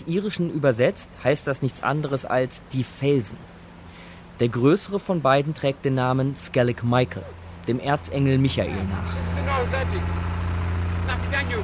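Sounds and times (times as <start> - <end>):
speech: 0.0 - 3.6, 4.4 - 10.4, 11.1 - 11.6
boat engine droning on a trip to the Skellig rocks in the Atlantic: 6.8 - 11.6.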